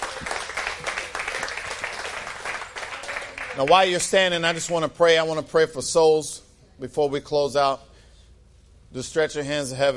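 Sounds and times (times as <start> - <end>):
audience clapping: 0.0 - 4.9
speech: 3.6 - 7.9, 8.9 - 9.9.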